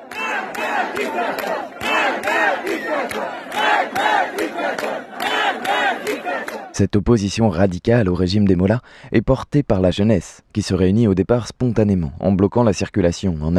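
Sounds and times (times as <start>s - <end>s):
protest crowd chanting a slogan in unison: 0.0s - 6.8s
speech: 0.9s - 13.5s.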